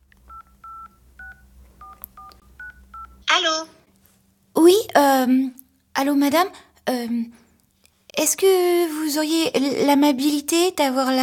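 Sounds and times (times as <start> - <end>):
telephone keypad dialing tones: 0.3 - 3.3
speech: 4.6 - 7.4, 8.2 - 11.2.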